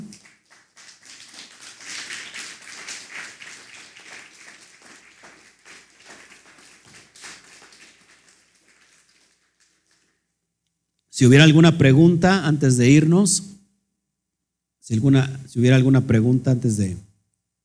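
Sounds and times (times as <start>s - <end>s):
applause: 0.0s - 10.2s
speech: 11.2s - 13.6s, 14.9s - 17.1s.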